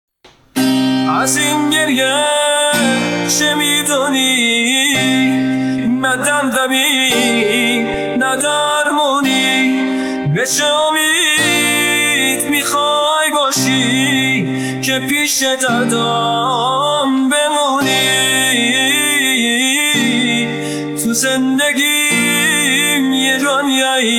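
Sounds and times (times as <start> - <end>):
guitar: 0.2 - 24.1.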